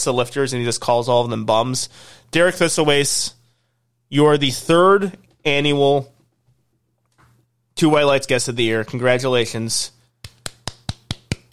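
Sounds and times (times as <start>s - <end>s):
speech: 0.0s - 3.4s, 4.1s - 6.1s, 7.8s - 10.0s
hand clapping: 10.2s - 11.5s.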